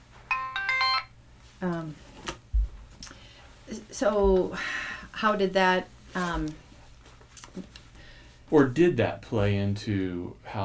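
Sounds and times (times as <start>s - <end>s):
mobile phone ringtone: 0.3s - 1.2s
speech: 1.6s - 2.1s, 3.9s - 6.6s, 8.5s - 10.6s.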